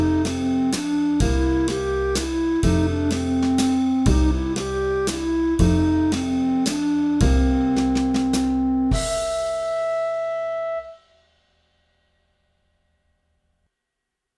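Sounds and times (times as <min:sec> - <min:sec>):
blues music in three-four time: 0:00.0 - 0:11.3.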